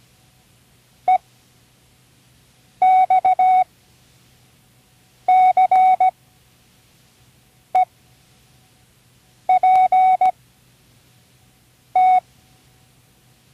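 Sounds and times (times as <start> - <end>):
Morse code: 2.8 - 3.6, 5.3 - 6.1, 9.5 - 10.3, 12.0 - 12.2.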